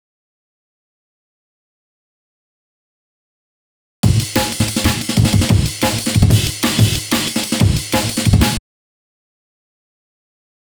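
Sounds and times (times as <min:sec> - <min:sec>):
drum break: 0:04.0 - 0:08.6.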